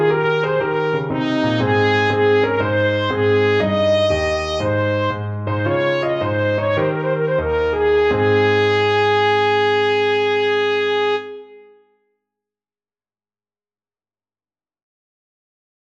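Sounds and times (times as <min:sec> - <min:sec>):
trumpet: 0:00.0 - 0:11.9.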